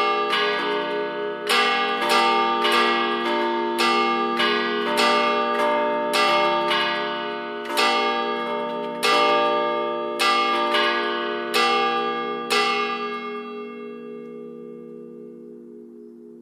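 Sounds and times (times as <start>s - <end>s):
used multi-voice church bells ringing in d1 f1 g1: 0.0s - 16.3s.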